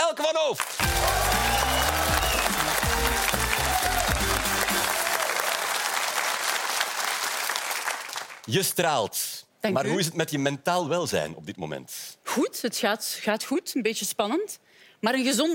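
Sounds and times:
speech: 0.2s - 1.1s, 8.5s - 15.5s
audience applause: 0.6s - 8.5s.

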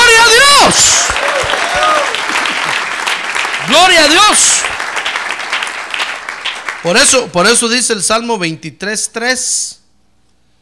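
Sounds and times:
man calling out: 0.0s - 1.1s, 3.6s - 4.7s
audience applause: 0.7s - 7.2s
speech: 6.8s - 9.8s.

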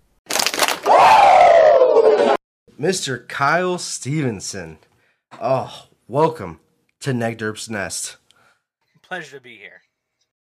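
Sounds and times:
crowd shouting a collective woo: 0.9s - 2.4s
speech: 2.8s - 8.2s, 9.1s - 9.9s.

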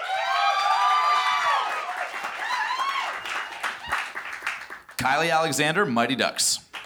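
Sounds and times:
audience applause and cheering: 0.0s - 5.0s
speech: 5.0s - 6.6s.

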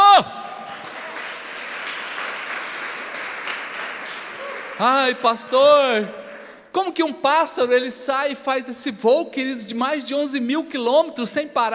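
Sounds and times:
audience applauding: 0.6s - 6.6s
speech: 4.8s - 6.2s, 6.8s - 11.7s.

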